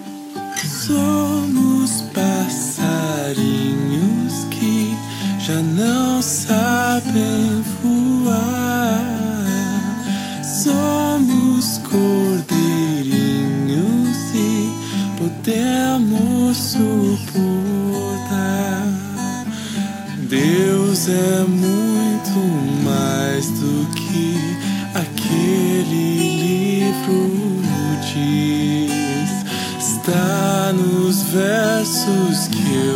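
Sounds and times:
lullaby: 0.5 - 32.9.

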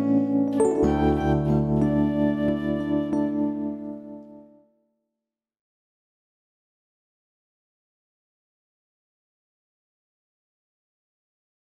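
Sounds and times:
children's instrumental music: 0.0 - 4.6.

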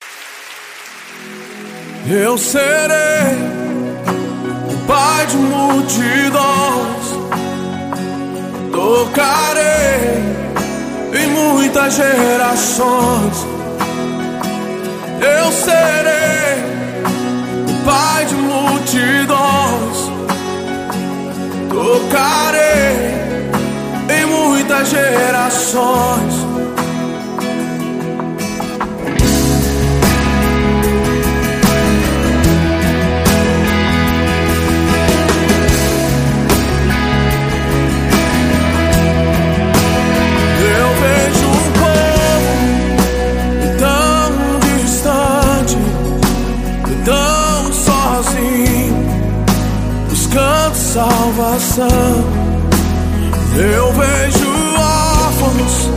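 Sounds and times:
gospel music: 0.0 - 55.9.

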